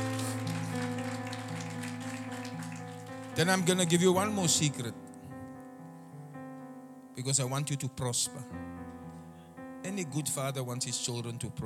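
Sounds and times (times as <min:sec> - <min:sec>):
audience clapping hands: 0:00.0 - 0:04.8
speech: 0:03.4 - 0:05.0, 0:07.2 - 0:08.7, 0:10.0 - 0:11.6.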